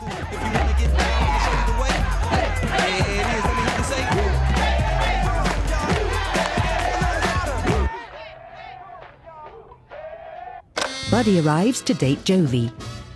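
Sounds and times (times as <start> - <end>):
people laughing: 0.0 - 8.8
group clapping in time: 2.4 - 8.3, 8.9 - 10.1
speech: 11.1 - 12.9.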